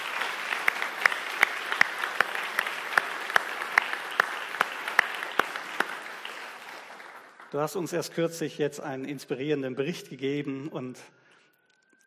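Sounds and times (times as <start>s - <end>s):
warm farewell applause from audience: 0.0s - 7.8s
speech: 7.5s - 11.2s.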